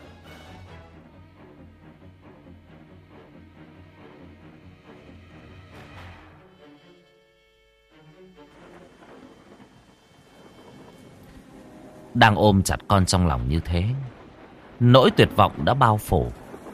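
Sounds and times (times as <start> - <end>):
heavy rain: 8.6 - 16.7
thunder rumbling: 8.6 - 16.7
speech: 12.2 - 14.2, 14.8 - 16.4.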